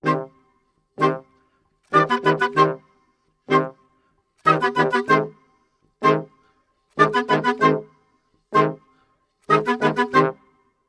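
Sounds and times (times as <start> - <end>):
orchestral brass and woodwind in C minor: 0.0 - 0.4, 1.9 - 2.8, 3.5 - 3.8, 4.5 - 5.4, 6.0 - 6.4, 7.0 - 7.9, 8.5 - 8.9, 9.5 - 10.4.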